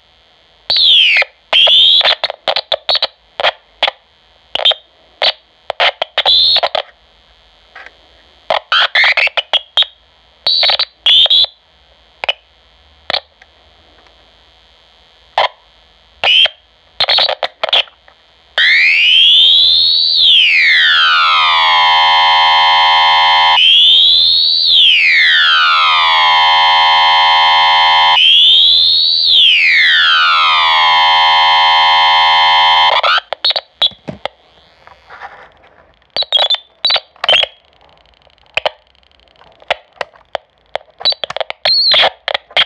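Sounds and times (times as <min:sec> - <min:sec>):
defective oscillator tone: 0:00.7 - 0:04.0, 0:04.5 - 0:06.8, 0:08.6 - 0:11.6, 0:15.4 - 0:42.6.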